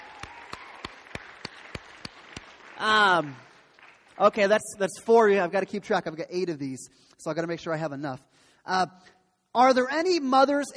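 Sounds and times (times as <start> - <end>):
round of applause: 0.0 - 4.4
speech: 2.8 - 3.5, 4.2 - 10.7.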